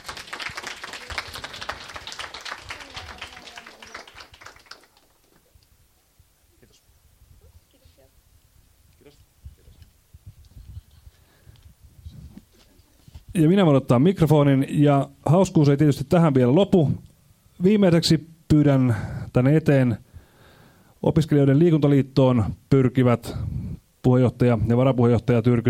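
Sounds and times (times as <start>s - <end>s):
audience applause: 0.0s - 5.4s
speech: 13.4s - 17.0s, 17.6s - 20.0s, 21.0s - 25.6s.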